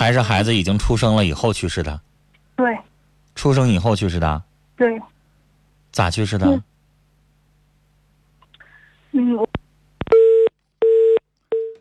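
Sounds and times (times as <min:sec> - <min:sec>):
speech: 0:00.0 - 0:05.1, 0:05.9 - 0:06.7, 0:09.2 - 0:09.6
telephone busy tone after the line drops: 0:10.1 - 0:11.7.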